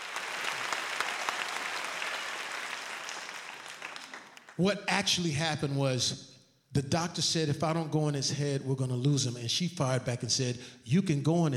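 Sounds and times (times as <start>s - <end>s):
audience clapping: 0.0s - 4.8s
speech: 4.6s - 11.5s.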